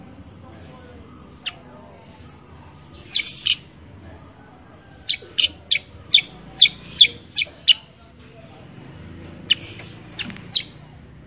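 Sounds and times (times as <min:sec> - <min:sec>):
Sooty-headed bulbul chirps: 0:02.3 - 0:03.7, 0:05.0 - 0:07.9, 0:09.4 - 0:10.8.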